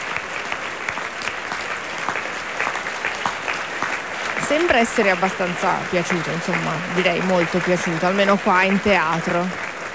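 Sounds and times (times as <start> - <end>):
theatre audience applauding opera cast: 0.0 - 9.9
speech: 4.5 - 9.7.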